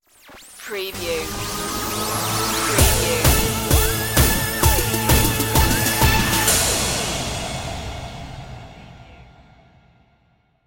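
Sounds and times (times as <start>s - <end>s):
pop TV stinger: 0.9s - 8.8s.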